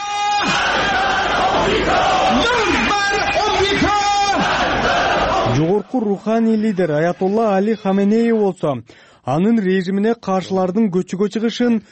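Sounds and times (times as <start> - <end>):
constant crowd noise: 0.0 - 8.0
crowd shouting slogans at a state-organised rally: 0.4 - 5.7
speech: 5.7 - 11.8.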